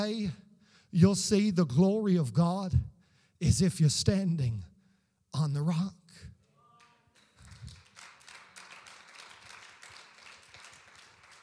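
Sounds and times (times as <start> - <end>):
speech: 0.0 - 4.7, 5.3 - 6.3
audience clapping: 6.7 - 11.4.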